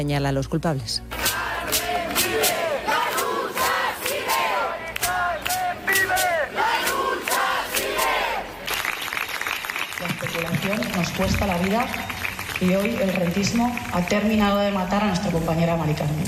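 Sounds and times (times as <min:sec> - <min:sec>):
speech: 0:00.0 - 0:01.2, 0:10.4 - 0:16.2
many voices shouting and cheering: 0:01.1 - 0:08.7
large crowd clapping: 0:01.2 - 0:14.7.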